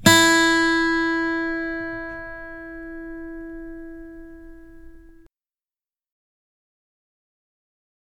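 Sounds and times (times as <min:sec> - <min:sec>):
ukulele being tuned: 0:00.0 - 0:05.3.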